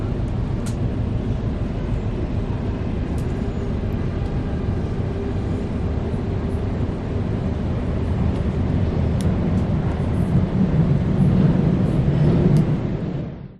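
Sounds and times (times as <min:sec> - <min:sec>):
metro train interior ride in Sydney, Australia: 0:00.0 - 0:13.5.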